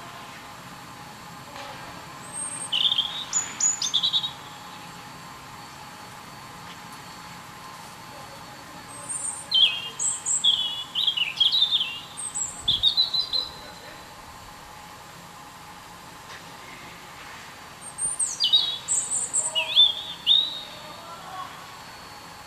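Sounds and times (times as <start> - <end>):
European robin song: 2.2 - 4.8, 8.9 - 13.8, 17.8 - 22.0.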